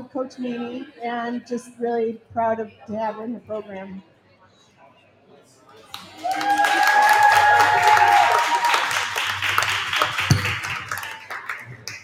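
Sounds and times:
speech: 0.1 - 4.1
cheering and clapping from audience: 5.9 - 12.0.

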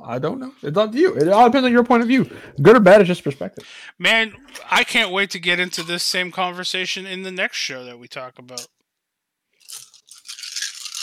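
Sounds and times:
speech: 0.0 - 8.8
dice being rolled: 9.6 - 11.0.

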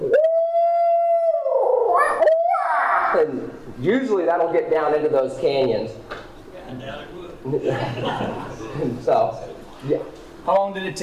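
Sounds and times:
person imitating a loud owl call: 0.0 - 3.2
speech: 3.1 - 11.0
laughter: 7.4 - 9.1.

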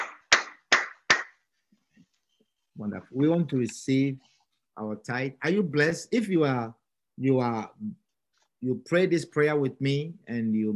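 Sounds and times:
audience clapping: 0.0 - 1.5
speech: 2.8 - 8.0, 8.6 - 10.7.

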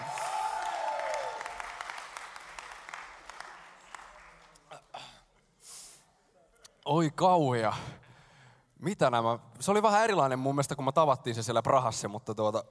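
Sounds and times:
audience applause: 0.0 - 4.7
speech: 6.9 - 8.0, 8.8 - 12.6.

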